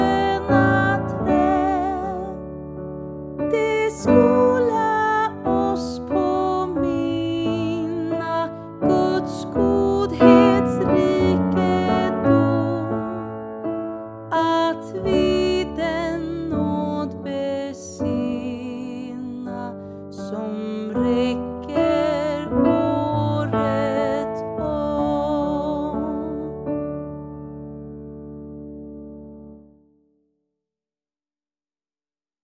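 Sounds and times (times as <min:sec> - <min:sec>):
person singing: 0:00.0 - 0:02.4, 0:03.5 - 0:13.4, 0:14.3 - 0:26.7
piano: 0:00.0 - 0:30.3.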